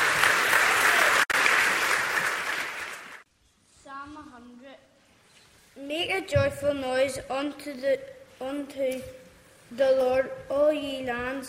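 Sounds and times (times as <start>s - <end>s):
audience applause: 0.0s - 3.2s
speech: 5.9s - 11.4s.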